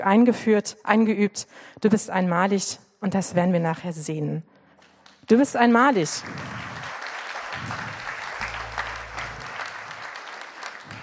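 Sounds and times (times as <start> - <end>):
speech: 0.0 - 4.6, 5.3 - 6.7
audience applause: 6.1 - 11.0.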